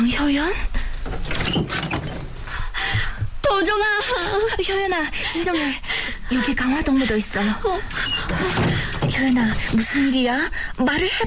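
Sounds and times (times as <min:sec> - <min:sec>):
speech: 0:00.2 - 0:02.1, 0:02.9 - 0:11.2
door being opened with scraping and rattling: 0:01.0 - 0:02.5, 0:07.7 - 0:10.2.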